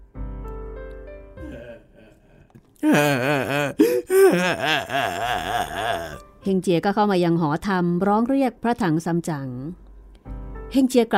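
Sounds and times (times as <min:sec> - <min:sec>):
speech: 0:02.8 - 0:05.6, 0:06.4 - 0:09.8, 0:10.7 - 0:11.1
Zhu Bajie (Pigsy) wailing in a dramatised Journey to the West story: 0:02.8 - 0:06.2.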